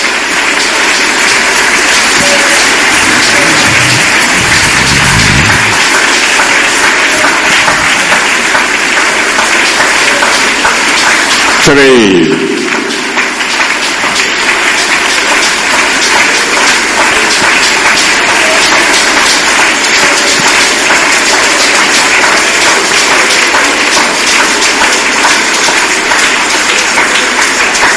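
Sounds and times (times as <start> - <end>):
audience clapping: 0.0 - 27.9
speech: 11.6 - 12.6.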